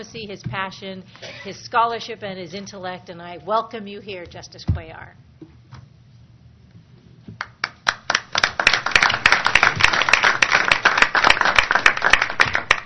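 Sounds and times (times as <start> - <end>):
speech: 0.0 - 5.3
audience applause at a court swearing-in ceremony: 7.6 - 12.8.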